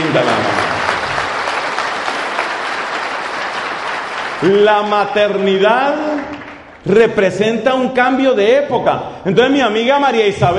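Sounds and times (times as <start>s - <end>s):
audience applause for mothers: 0.0s - 7.0s
speech: 4.4s - 10.5s.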